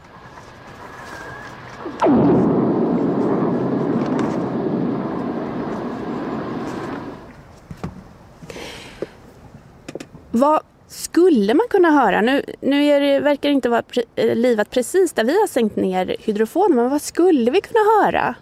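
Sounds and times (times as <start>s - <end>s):
lightning strike crack and deep rumbling roar recorded underwater by hydrophone: 1.8s - 7.3s
speech: 10.4s - 18.4s.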